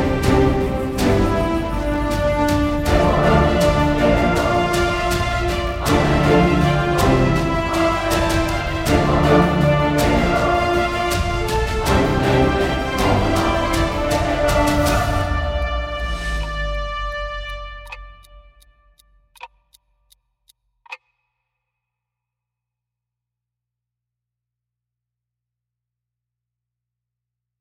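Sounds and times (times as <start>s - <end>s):
80 bpm music track: 0.0s - 19.8s.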